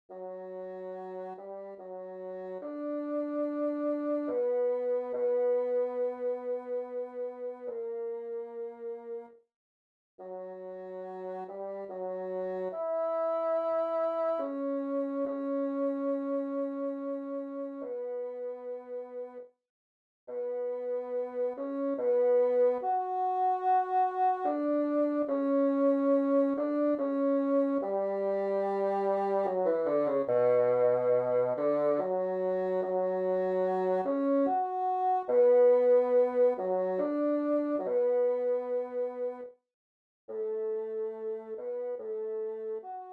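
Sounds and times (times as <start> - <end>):
bassoon: 0.1 - 9.4, 10.2 - 19.5, 20.3 - 39.5, 40.3 - 43.1.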